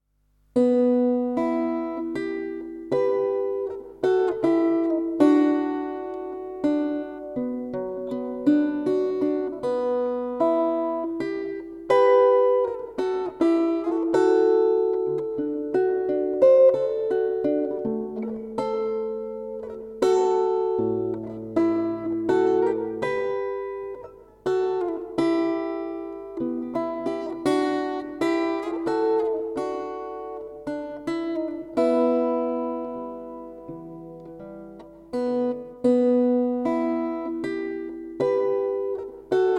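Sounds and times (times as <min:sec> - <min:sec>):
guitar: 0:00.0 - 0:39.5.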